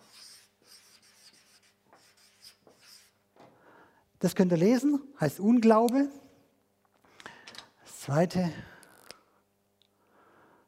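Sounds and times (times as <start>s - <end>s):
pen strokes writing two words on a small sketch: 0.0s - 3.1s
speech: 4.2s - 6.2s, 8.1s - 8.7s.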